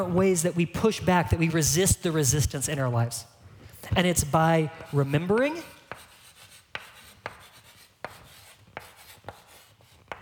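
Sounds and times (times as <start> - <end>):
speech: 0.0 - 5.8
chalk writing on a board: 4.0 - 10.1.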